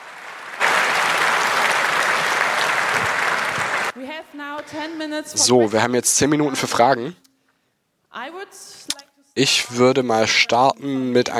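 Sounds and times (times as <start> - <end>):
audience applause: 0.0 - 4.0
speech: 4.3 - 7.2, 8.2 - 11.3.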